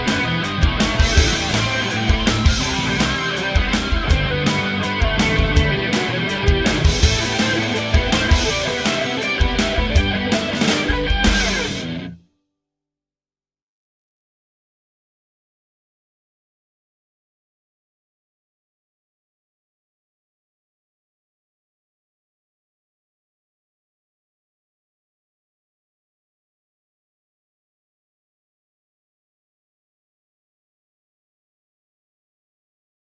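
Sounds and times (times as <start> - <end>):
guitar: 0.0 - 12.4.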